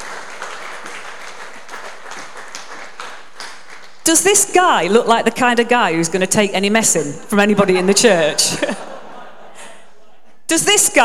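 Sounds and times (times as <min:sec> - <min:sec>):
audience applause: 0:00.0 - 0:04.0
speech: 0:04.1 - 0:08.9, 0:10.5 - 0:11.0
laughter: 0:07.5 - 0:10.4.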